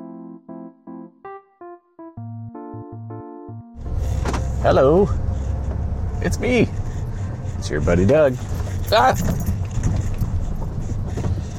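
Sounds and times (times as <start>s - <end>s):
low steady rumble of car noise while driving home: 3.8s - 11.5s
speech: 4.6s - 5.4s, 6.2s - 6.8s, 7.6s - 9.5s.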